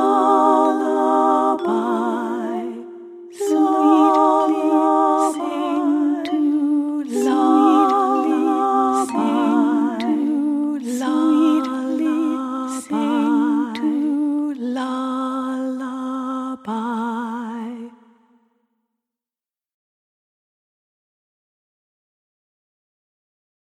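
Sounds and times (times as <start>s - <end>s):
Russian lullaby: 0.0s - 18.1s.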